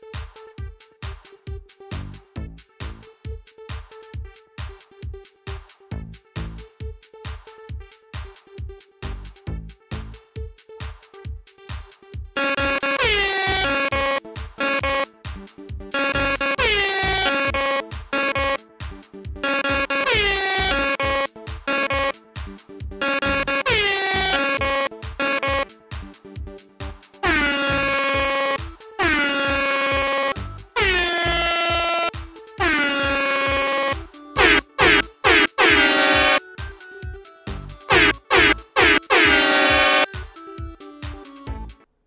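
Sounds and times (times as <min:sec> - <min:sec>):
theme song played on air horns: 0:12.4 - 0:15.0, 0:15.9 - 0:18.6, 0:19.4 - 0:22.1, 0:23.0 - 0:25.6, 0:27.2 - 0:36.4, 0:37.9 - 0:40.1.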